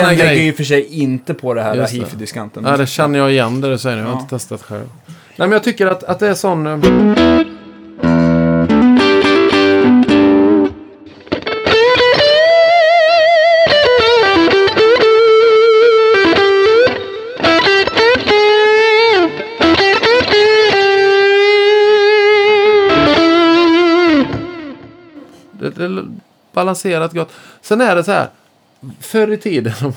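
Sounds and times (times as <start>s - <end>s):
speech: 0.0s - 7.6s, 26.6s - 29.9s
distorted electric guitar playing sustained lead notes with bends and slides: 6.8s - 25.2s.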